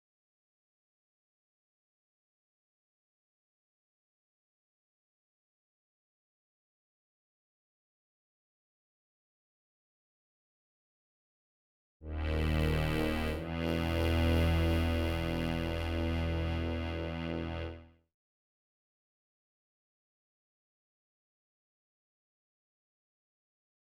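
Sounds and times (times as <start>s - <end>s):
synth: 12.1s - 17.8s.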